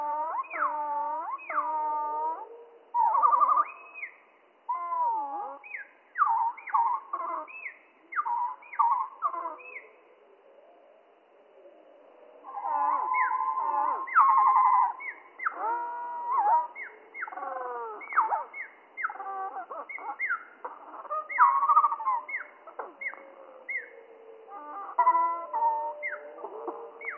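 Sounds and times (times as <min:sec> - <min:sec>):
spotted flycatcher song slowed down: 0:00.0 - 0:27.1.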